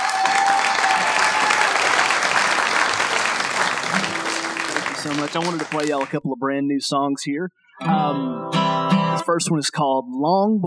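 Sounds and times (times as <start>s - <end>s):
audience applause welcoming a musician back to the stage: 0.0s - 6.2s
speech: 5.1s - 10.6s.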